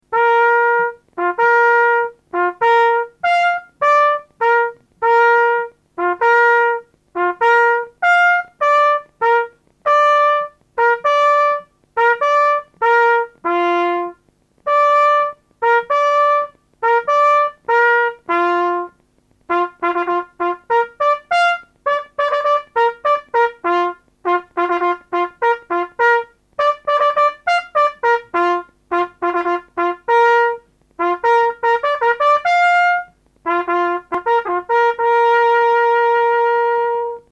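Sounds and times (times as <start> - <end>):
fanfare: 0.1 - 37.3.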